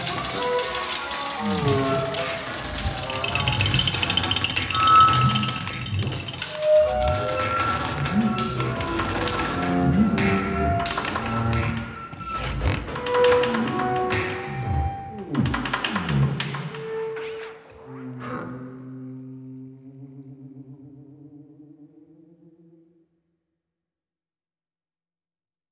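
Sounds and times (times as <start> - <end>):
orchestral music: 0.0 - 16.4.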